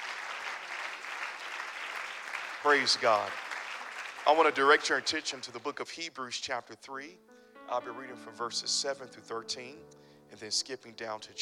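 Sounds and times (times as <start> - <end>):
audience hand clapping: 0.0 - 5.5
speech: 2.6 - 3.4, 4.2 - 11.4.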